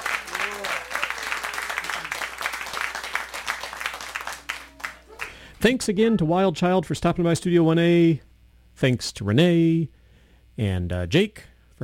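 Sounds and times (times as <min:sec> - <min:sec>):
studio audience applause: 0:00.0 - 0:05.5
speech: 0:05.6 - 0:10.0, 0:10.6 - 0:11.8.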